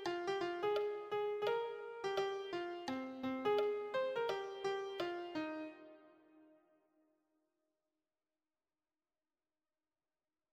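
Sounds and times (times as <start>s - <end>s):
melody: 0.0s - 6.1s.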